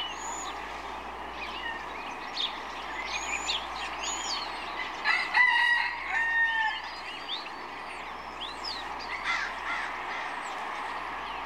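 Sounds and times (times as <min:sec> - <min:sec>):
songbirds whistling and chirping: 0:00.0 - 0:11.4
rooster crowing: 0:05.0 - 0:07.0.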